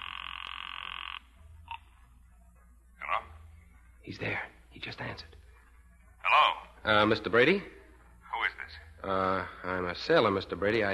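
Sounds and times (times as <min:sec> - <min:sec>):
telephone ringing: 0:00.0 - 0:01.8
speech: 0:04.1 - 0:05.4, 0:06.3 - 0:07.8, 0:09.0 - 0:10.9.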